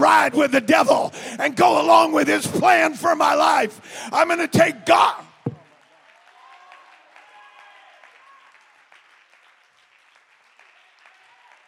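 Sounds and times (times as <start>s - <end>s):
speech: 0.0s - 5.2s
faint voices and cheers: 5.0s - 8.6s
audience clapping: 5.3s - 11.6s.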